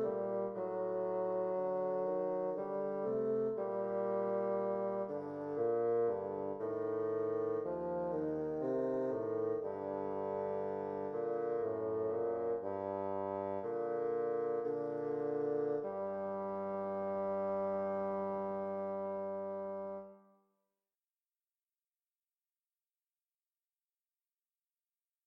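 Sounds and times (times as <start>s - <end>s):
bassoon duet: 0.0s - 20.3s.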